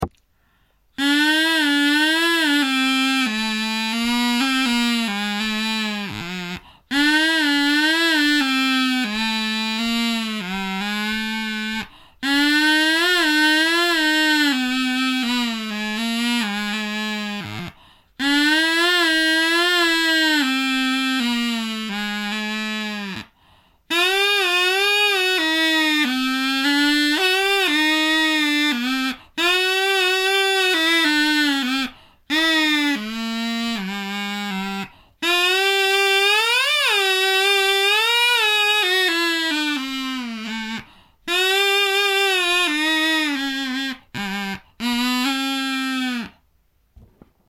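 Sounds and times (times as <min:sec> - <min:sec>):
groovy reed pipe: 0:01.0 - 0:46.4.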